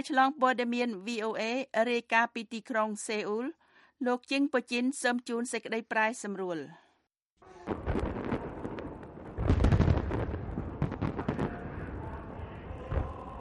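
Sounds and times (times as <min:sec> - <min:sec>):
speech: 0:00.0 - 0:06.8
fireworks at a state funeral in Pyongyang: 0:07.6 - 0:13.3.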